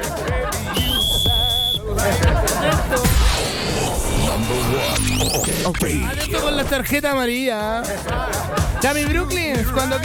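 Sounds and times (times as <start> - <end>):
laughter: 0.0 - 5.0, 7.7 - 10.0
whistle being blown as signal or alarm: 0.7 - 1.8
speech: 5.6 - 10.0.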